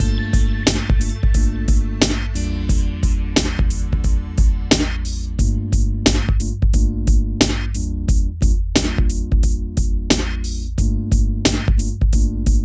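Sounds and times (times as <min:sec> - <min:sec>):
hip hop and R&B drum loops: 0:00.0 - 0:12.6.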